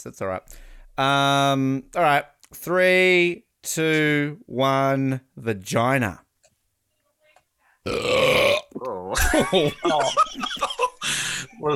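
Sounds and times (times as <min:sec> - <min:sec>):
speech: 0:00.0 - 0:06.2, 0:07.9 - 0:11.7
burp imitating a lion's roar: 0:07.9 - 0:09.2
laughter: 0:09.2 - 0:11.7.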